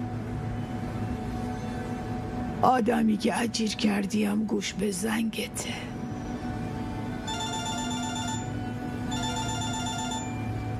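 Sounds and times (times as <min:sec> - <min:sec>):
steady low hum: 0:00.0 - 0:10.7
speech: 0:02.6 - 0:06.0
telephone ringing with an incoming call from a hospital: 0:07.2 - 0:10.7.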